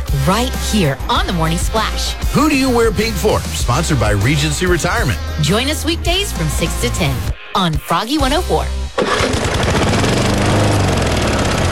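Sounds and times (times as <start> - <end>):
speech: 0.2 - 9.5
lawn mower engine running: 9.0 - 11.6.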